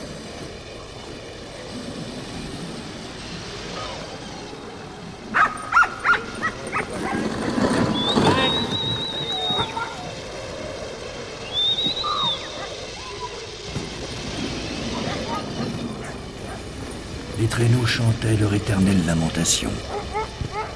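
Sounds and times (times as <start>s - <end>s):
sled dog pack barking: 5.2s - 10.3s, 12.0s - 13.6s, 14.6s - 17.1s, 19.8s - 20.7s
speech: 17.6s - 20.2s.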